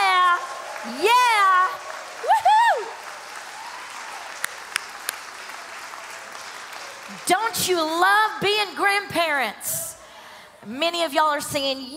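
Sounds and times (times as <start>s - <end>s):
audience applause for grandparents: 0.0s - 8.0s
speech: 7.2s - 9.9s, 10.6s - 11.9s.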